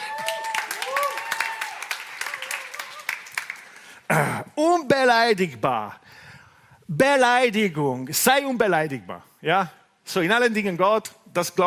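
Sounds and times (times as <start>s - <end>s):
raised voices calling out and cheering: 0.0s - 3.2s
audience applause: 0.0s - 4.0s
speech: 4.2s - 6.0s, 6.9s - 11.6s.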